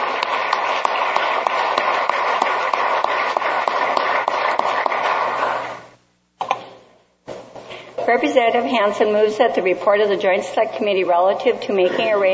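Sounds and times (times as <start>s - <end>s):
crowd applause: 0.0s - 5.8s
speech: 8.1s - 12.3s.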